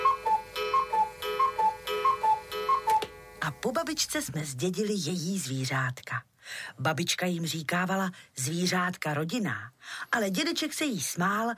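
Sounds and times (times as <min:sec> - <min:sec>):
cuckoo clock ticking: 0:00.0 - 0:03.1
speech: 0:03.6 - 0:11.5.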